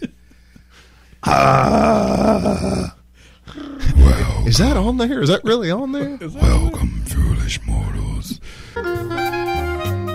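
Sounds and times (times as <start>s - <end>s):
person growling: 1.2s - 3.0s, 3.6s - 4.8s
speech: 1.2s - 3.6s, 4.5s - 9.1s.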